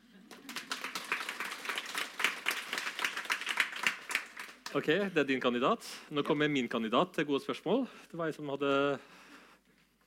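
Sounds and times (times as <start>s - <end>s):
applause: 0.0s - 4.9s
speech: 4.7s - 9.2s.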